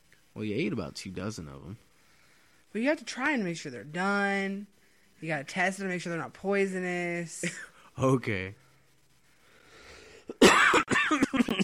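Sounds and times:
speech: 0.4 - 1.9, 2.7 - 8.6
person coughing and hawking while recovering from bronchitis: 10.3 - 11.6.

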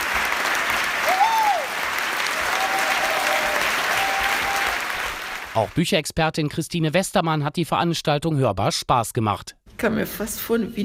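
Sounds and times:
long sustained audience applause: 0.0 - 5.8
speech: 5.6 - 10.8.

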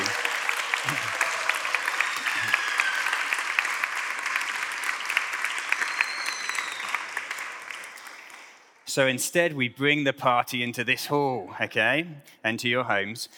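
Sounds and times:
audience applause: 0.0 - 8.7
speech: 9.0 - 13.3.

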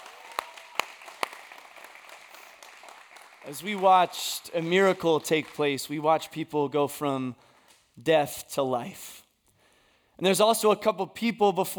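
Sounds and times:
crowd applauding: 0.0 - 6.1
speech: 3.4 - 9.2, 10.2 - 11.7.

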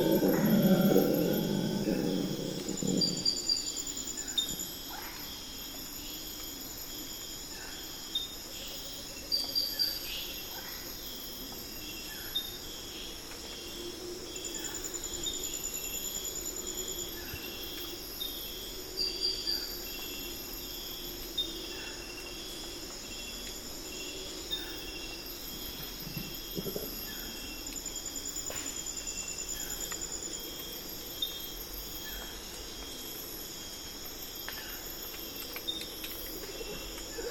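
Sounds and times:
low loud hoot or call: 0.0 - 3.4
chorus of insects and crickets in the Amazon rainforest before dawn: 0.0 - 37.2.

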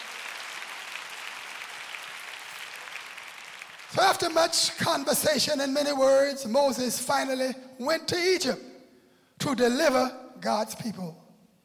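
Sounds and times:
people clapping hands: 0.0 - 4.8
speech: 3.9 - 8.7, 9.4 - 11.2.

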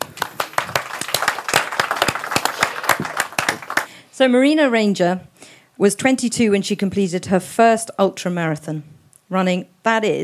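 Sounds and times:
audience applause: 0.0 - 3.9
speech: 4.2 - 10.2.

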